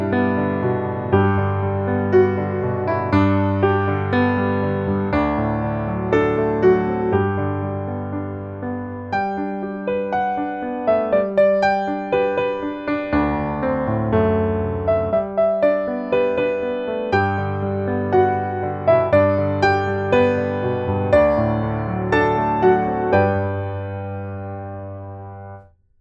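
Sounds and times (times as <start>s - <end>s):
piano playing: 0.0s - 25.7s.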